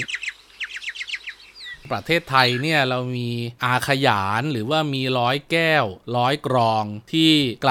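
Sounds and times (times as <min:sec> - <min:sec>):
myna birds calling: 0:00.0 - 0:03.1
speech: 0:01.9 - 0:07.6.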